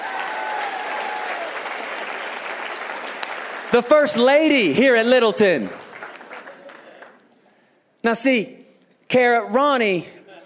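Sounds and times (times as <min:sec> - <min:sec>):
church congregation applauding: 0:00.0 - 0:07.4
speech: 0:03.7 - 0:05.8, 0:08.0 - 0:10.2.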